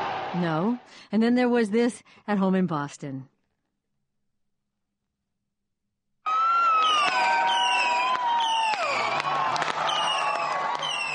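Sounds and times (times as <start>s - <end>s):
crowd of thousands of fans cheering: 0.0s - 0.9s, 6.2s - 11.1s
speech: 0.4s - 3.3s.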